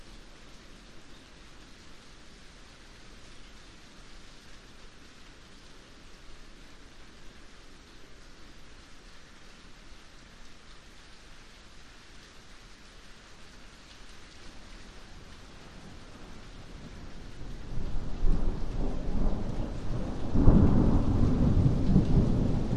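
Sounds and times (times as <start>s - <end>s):
very light rain drips in a yard: 0.0s - 22.7s
distant thunderstorm rumbles over a yard: 17.6s - 22.7s.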